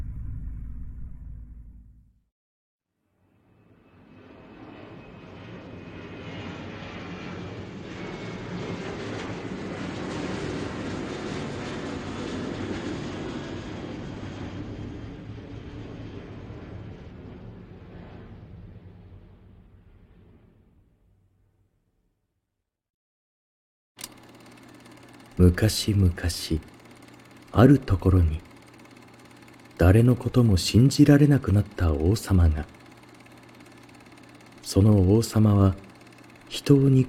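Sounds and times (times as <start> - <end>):
airplane taking off: 3.4 - 20.6
speech: 25.4 - 26.7, 27.6 - 28.5, 29.8 - 32.8, 34.7 - 35.8, 36.5 - 37.0.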